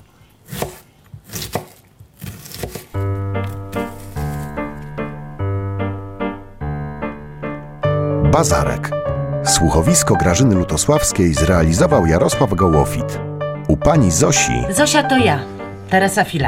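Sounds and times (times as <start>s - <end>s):
knife chopping cabbage on a board: 0.4s - 4.9s
steady tune of sustained musical notes: 4.5s - 16.4s
speech: 8.4s - 16.4s.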